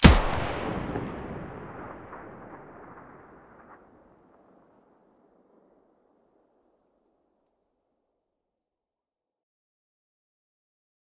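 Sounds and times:
weapon muzzle blast: 0.0 - 3.6.

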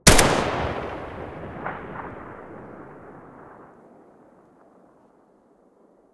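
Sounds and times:
Galil rifle muzzle gunshot: 0.0 - 3.5.

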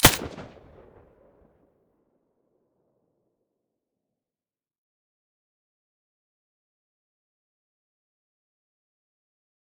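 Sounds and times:
suppressed gunshot: 0.0 - 1.0.

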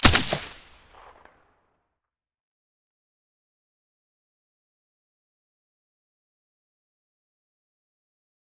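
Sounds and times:
SCAR rifle with silencer firing: 0.0 - 1.2.

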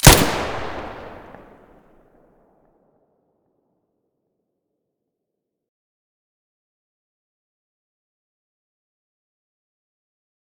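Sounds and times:
weapon muzzle blasts: 0.0 - 1.6.

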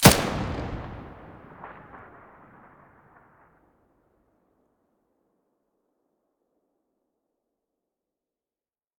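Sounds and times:
gun muzzle blast: 0.0 - 2.8.

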